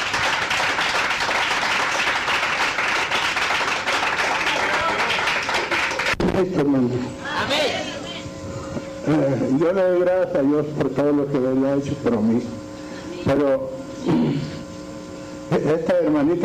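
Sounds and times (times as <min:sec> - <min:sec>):
audience applause: 0:00.0 - 0:06.2
speech: 0:06.4 - 0:07.3, 0:09.1 - 0:12.6, 0:13.2 - 0:14.2, 0:15.6 - 0:16.4.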